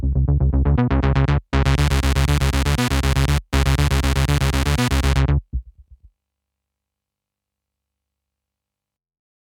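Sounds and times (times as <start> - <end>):
noise bass synth lead SE02: 0.2 - 5.4.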